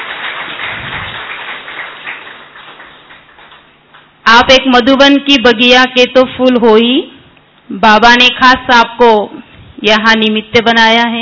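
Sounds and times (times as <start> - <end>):
crowd clapping: 0.0 - 4.2
speech: 4.4 - 7.1, 7.7 - 11.2.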